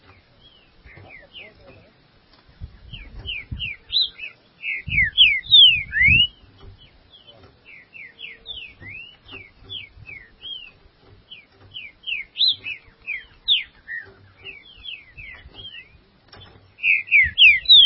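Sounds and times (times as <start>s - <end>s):
green-winged saltator singing: 2.9s - 6.5s, 7.7s - 10.8s, 11.8s - 17.8s.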